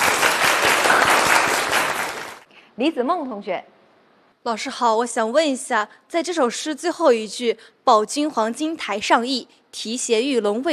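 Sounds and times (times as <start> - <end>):
class applauding: 0.0 - 2.5
speech: 2.8 - 3.8, 4.4 - 10.7.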